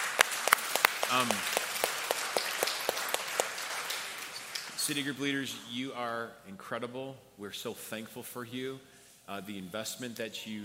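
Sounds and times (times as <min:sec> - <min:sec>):
crowd clapping: 0:00.0 - 0:05.0
speech: 0:01.1 - 0:01.6, 0:04.9 - 0:10.6.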